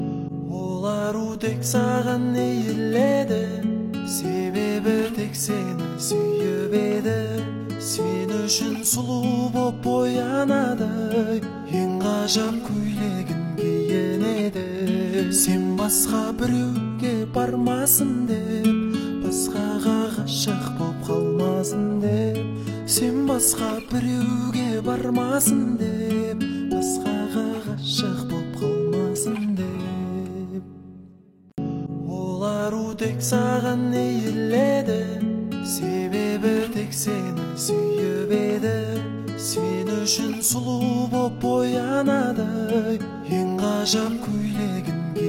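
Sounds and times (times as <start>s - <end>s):
acoustic music: 0.0s - 45.2s.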